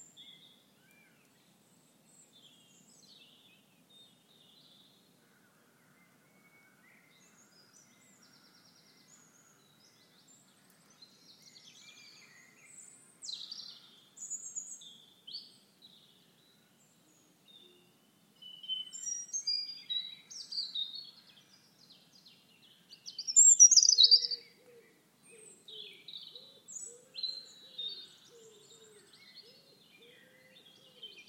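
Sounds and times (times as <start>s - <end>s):
dawn chorus birdsong in the Pentland Hills outside Edinburgh in Scotland: 0.0s - 31.2s
lower repeated bird call: 23.1s - 24.9s.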